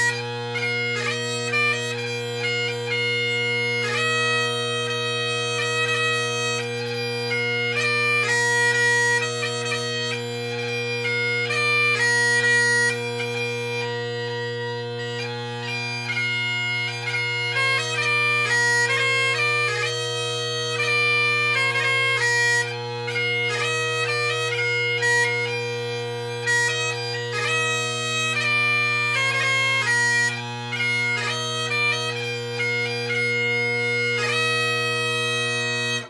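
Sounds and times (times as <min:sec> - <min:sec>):
bagpipe: 0:00.0 - 0:36.0.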